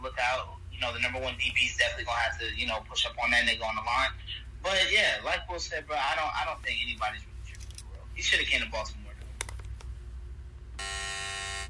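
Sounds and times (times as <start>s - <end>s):
speech: 0.3s - 7.3s, 8.2s - 9.0s
buzzer sound effect: 10.8s - 11.6s.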